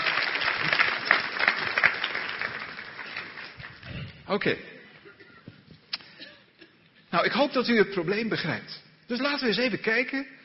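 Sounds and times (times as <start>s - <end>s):
audience applause: 0.0s - 4.1s
speech: 4.3s - 4.7s, 7.2s - 10.4s.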